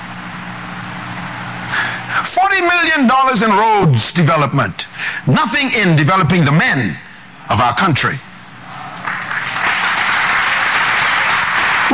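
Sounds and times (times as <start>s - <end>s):
speech: 2.3s - 8.3s
crowd applause: 8.8s - 11.9s.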